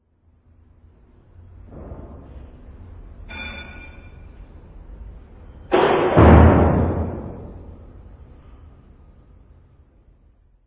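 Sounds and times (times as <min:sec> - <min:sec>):
arena door slamming: 0:05.7 - 0:07.7.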